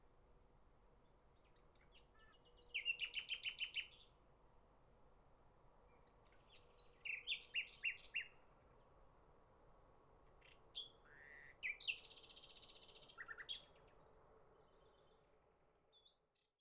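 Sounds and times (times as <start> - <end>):
nightingale singing in spring: 1.0 - 4.2, 5.8 - 8.4, 10.3 - 14.0.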